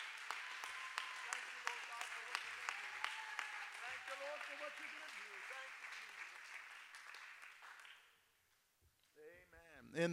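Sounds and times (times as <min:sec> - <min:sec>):
audience clapping hands in praise: 0:00.0 - 0:08.2
speech: 0:04.1 - 0:06.3, 0:09.8 - 0:10.1.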